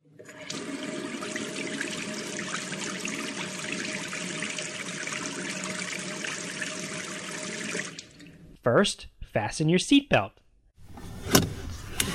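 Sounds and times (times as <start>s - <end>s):
tap water running: 0.1s - 8.4s
speech: 8.7s - 10.4s.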